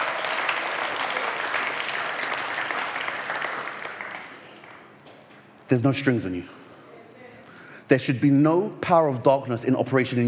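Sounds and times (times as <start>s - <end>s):
audience clapping: 0.0s - 5.1s
speech: 5.7s - 6.6s, 7.9s - 10.2s.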